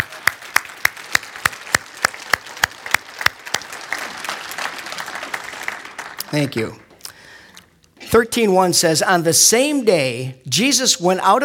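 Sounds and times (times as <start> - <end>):
group applause: 0.0 - 7.6
speech: 6.3 - 6.8, 8.1 - 11.4.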